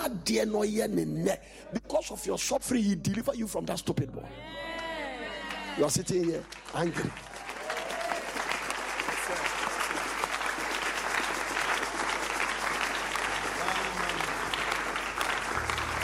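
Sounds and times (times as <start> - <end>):
speech: 0.1 - 4.8, 5.8 - 7.4
audience clapping: 4.8 - 16.0.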